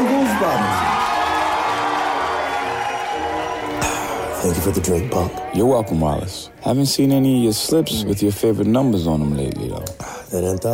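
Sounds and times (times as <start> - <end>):
crowd cheering and whooping for a tap dancer: 0.0 - 6.2
speech: 4.4 - 10.7.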